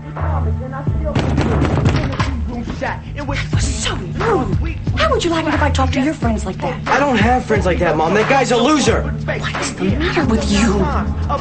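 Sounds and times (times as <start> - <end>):
fist pounding on a door: 1.1 - 2.4
speech: 2.8 - 11.3.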